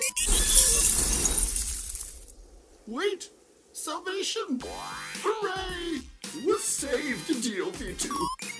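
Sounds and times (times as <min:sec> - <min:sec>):
spaceship crash landing with glass shattering: 0:00.2 - 0:02.7
speech: 0:02.9 - 0:08.4.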